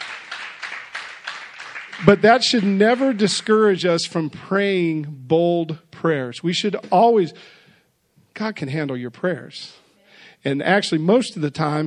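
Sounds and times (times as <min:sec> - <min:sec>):
audience clapping: 0:00.0 - 0:03.9
speech: 0:02.0 - 0:07.6, 0:08.4 - 0:09.8, 0:10.4 - 0:11.8.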